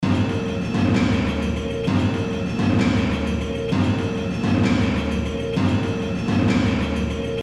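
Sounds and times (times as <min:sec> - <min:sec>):
kettle drums: 0:00.0 - 0:07.4.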